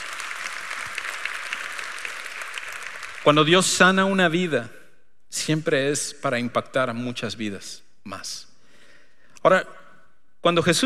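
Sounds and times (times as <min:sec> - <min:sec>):
audience applause: 0:00.0 - 0:03.5
speech: 0:03.2 - 0:08.5, 0:09.4 - 0:09.8, 0:10.4 - 0:10.8.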